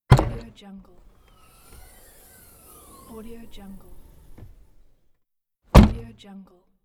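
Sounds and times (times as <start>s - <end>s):
car trunk: 0.0s - 4.9s, 5.7s - 6.1s.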